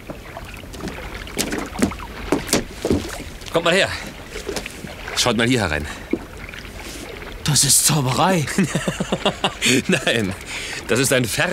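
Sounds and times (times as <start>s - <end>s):
rowing a raft through water: 0.0s - 11.5s
speech: 3.6s - 4.1s, 5.2s - 6.0s, 7.4s - 11.5s
laughter: 8.4s - 10.6s.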